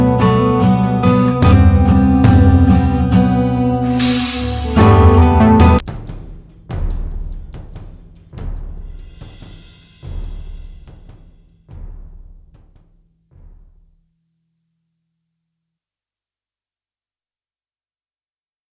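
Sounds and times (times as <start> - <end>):
instrumental music: 0.0 - 5.9.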